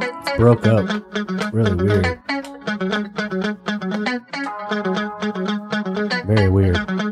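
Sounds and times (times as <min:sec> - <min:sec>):
speech: 0:00.1 - 0:05.0
keytar in an isolated music track: 0:06.2 - 0:06.9.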